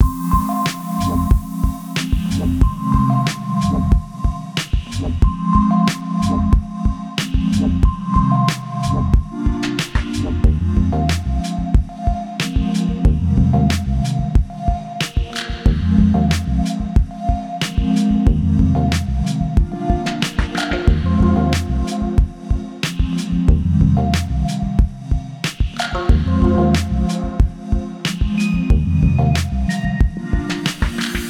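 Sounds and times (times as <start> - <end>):
background music: 0.0 - 31.2.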